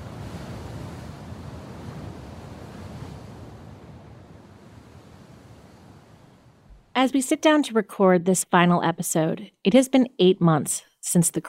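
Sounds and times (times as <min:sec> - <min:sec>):
sea waves churning: 0:00.0 - 0:06.8
speech: 0:07.0 - 0:11.4.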